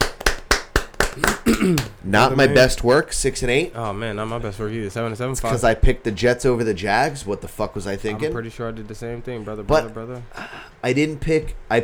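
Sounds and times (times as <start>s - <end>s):
people clapping: 0.0s - 2.9s
speech: 1.2s - 11.8s.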